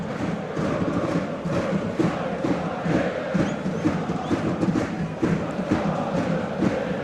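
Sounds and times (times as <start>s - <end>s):
Schalke fans chanting and singing in the stadium at Alte Försterei: 0.0s - 7.0s.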